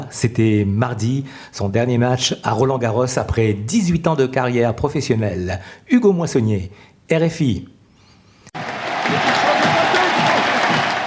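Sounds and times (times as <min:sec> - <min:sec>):
speech: 0:00.1 - 0:07.7
crowd applauding on the Roland-Garros centre court: 0:08.6 - 0:11.0.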